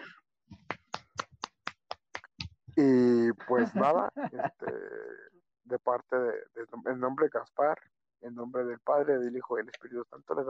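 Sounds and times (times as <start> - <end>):
small group applauding: 0.6 - 3.0
laughter: 2.8 - 5.2
speech: 2.8 - 10.4.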